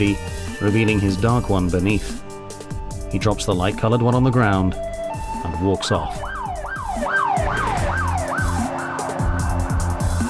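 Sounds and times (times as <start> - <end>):
speech: 0.0 - 2.2, 3.1 - 4.9, 5.5 - 6.3
police patrol car sirens wailing: 4.8 - 10.2.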